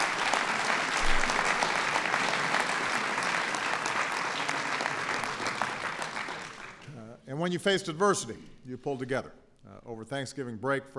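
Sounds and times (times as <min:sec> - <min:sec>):
audience applause: 0:00.0 - 0:06.9
speech: 0:07.4 - 0:10.9.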